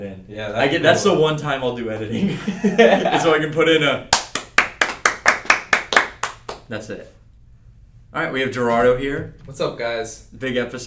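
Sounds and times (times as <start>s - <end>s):
speech: 0.0s - 4.2s, 6.7s - 7.2s, 8.1s - 10.8s
laughter: 2.1s - 3.5s
hand clapping: 4.1s - 6.7s.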